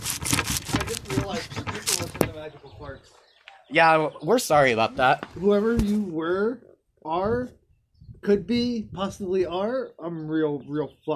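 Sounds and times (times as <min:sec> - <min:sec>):
scratching and rubbing against a phone: 0:00.0 - 0:02.4
speech: 0:02.9 - 0:07.6, 0:08.2 - 0:11.1.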